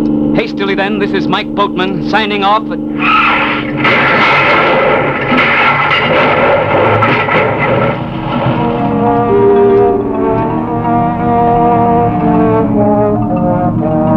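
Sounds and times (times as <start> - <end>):
car engine roaring: 0.0 - 14.1
speech: 0.4 - 4.0
rapid gunshots fired at car tires: 3.3 - 8.7.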